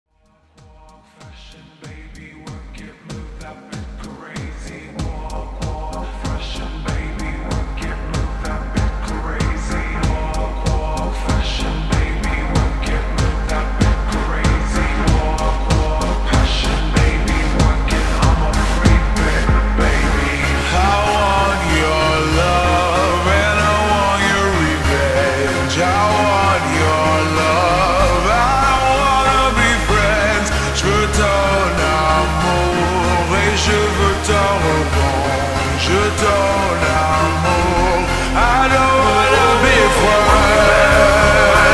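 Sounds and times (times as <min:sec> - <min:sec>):
slowed reverb music: 0:00.1 - 0:41.7.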